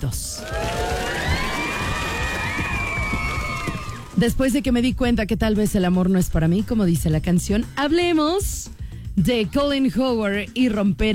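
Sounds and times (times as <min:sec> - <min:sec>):
speech: 0:00.0 - 0:00.7, 0:04.2 - 0:11.1
audience applause: 0:00.4 - 0:04.2.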